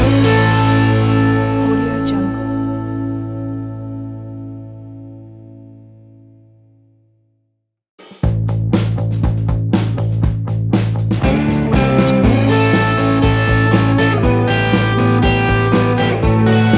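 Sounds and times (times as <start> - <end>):
sixties revival music: 0.0 - 3.7, 8.9 - 16.7.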